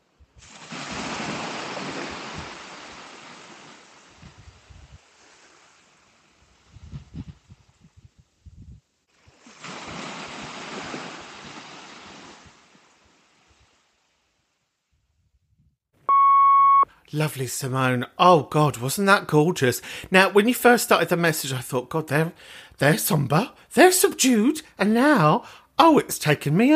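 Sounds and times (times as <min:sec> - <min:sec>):
sea waves on the shore in Connemara: 0:00.4 - 0:06.8, 0:09.1 - 0:14.5
speech: 0:17.1 - 0:26.7.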